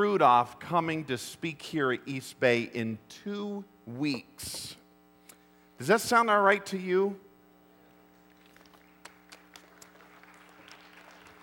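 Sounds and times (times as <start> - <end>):
speech: 0.0 - 4.8, 5.8 - 7.2
low electrical hum: 0.0 - 11.4
scattered audience clapping: 8.1 - 11.4.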